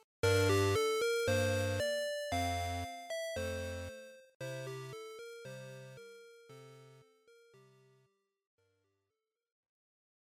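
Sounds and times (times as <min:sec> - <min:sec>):
Game Boy RPG field music: 0:00.2 - 0:07.7.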